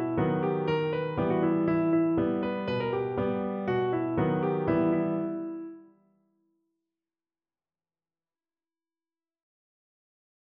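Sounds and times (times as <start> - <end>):
piano: 0.0 - 6.3.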